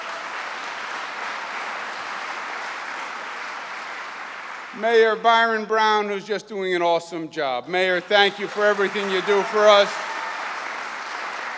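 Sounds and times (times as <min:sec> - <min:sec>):
round of applause: 0:00.0 - 0:05.7, 0:07.8 - 0:11.5
speech: 0:04.7 - 0:10.1.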